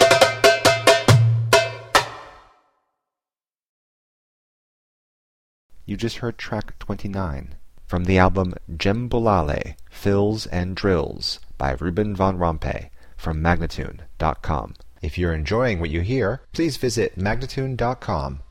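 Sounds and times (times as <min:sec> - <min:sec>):
djembe drumming: 0:00.0 - 0:02.4
person speaking dance instructions: 0:05.8 - 0:18.4.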